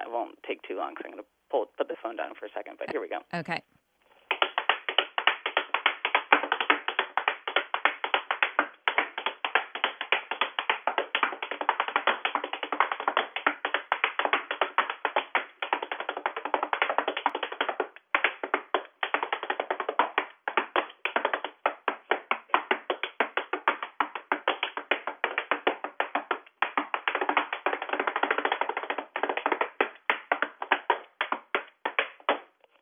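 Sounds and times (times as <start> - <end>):
speech: 0.1 - 3.8
tap dance shoes rhythmic tapping: 4.3 - 32.6.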